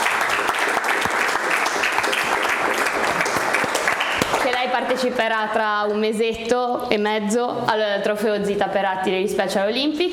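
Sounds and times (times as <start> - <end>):
applause: 0.0 - 5.1
speech: 5.0 - 10.1.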